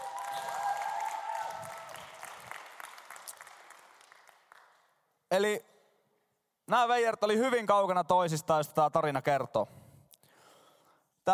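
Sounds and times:
audience applause: 0.0s - 4.8s
speech: 5.3s - 5.7s, 6.7s - 9.8s.

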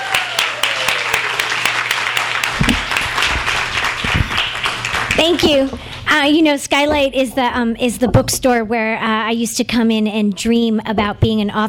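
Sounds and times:
audience applause: 0.0s - 6.1s
speech: 5.2s - 11.6s.

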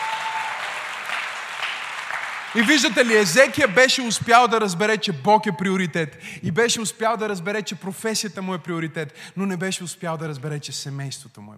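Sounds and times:
audience applause: 0.0s - 4.1s
speech: 2.5s - 11.5s.

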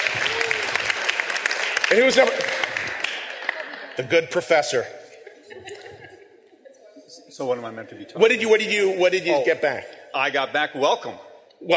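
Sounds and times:
audience applause: 0.0s - 4.4s
speech: 1.9s - 2.7s, 4.0s - 5.0s, 7.4s - 11.7s
laughter: 3.2s - 7.0s.

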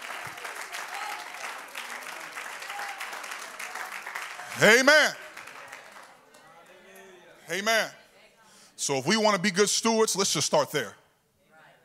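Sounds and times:
audience clapping hands: 0.0s - 7.0s
speech: 4.6s - 5.2s, 7.5s - 8.0s, 8.8s - 11.0s.

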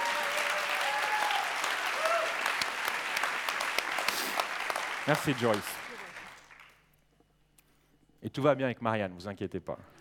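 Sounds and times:
audience applause: 0.0s - 6.8s
speech: 5.1s - 5.8s, 8.2s - 10.0s.

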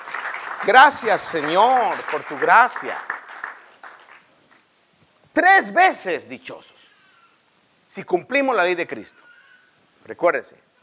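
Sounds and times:
audience applause: 0.0s - 4.2s
speech: 0.6s - 3.1s, 5.4s - 6.9s, 7.9s - 9.2s, 10.1s - 10.7s.

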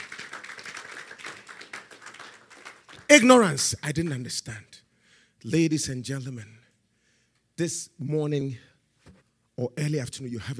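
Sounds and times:
audience clapping: 0.0s - 3.6s
speech: 3.1s - 4.7s, 5.4s - 6.6s, 7.6s - 8.7s, 9.6s - 10.5s.

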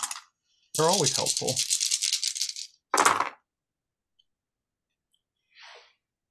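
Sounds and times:
dice rattling in a cupped hand: 0.0s - 0.2s, 0.8s - 3.4s
dice clattering onto a hard surface: 0.0s - 3.4s
speech: 0.8s - 1.8s.

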